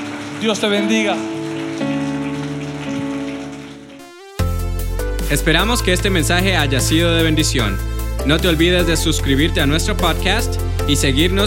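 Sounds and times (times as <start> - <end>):
audience applause: 0.0 - 4.5
speech: 0.4 - 1.9, 5.3 - 11.4.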